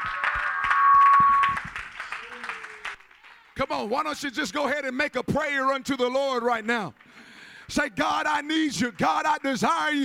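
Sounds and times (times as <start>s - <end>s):
audience clapping hands: 0.0s - 3.9s, 6.5s - 10.0s
speech: 3.6s - 7.0s, 7.7s - 10.0s.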